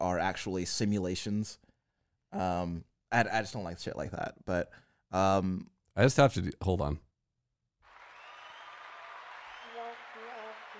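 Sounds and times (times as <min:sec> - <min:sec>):
speech: 0:00.2 - 0:01.6, 0:02.3 - 0:07.0
canned applause sound effect from soundboard: 0:07.8 - 0:10.7.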